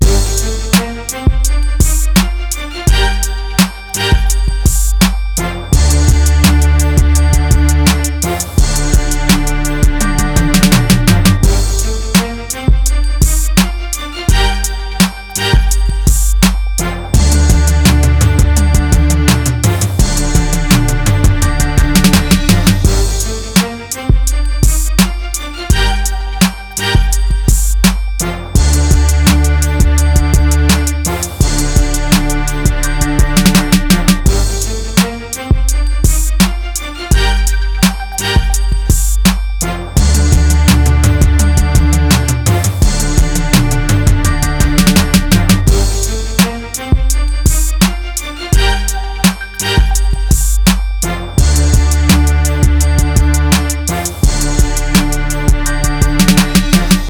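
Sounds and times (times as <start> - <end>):
instrumental music: 0.0 - 57.0.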